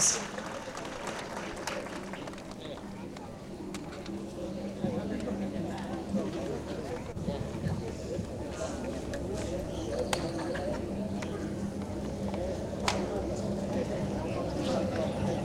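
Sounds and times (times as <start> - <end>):
crowd clapping: 0.0 - 2.9
murmur of voices: 0.0 - 15.4.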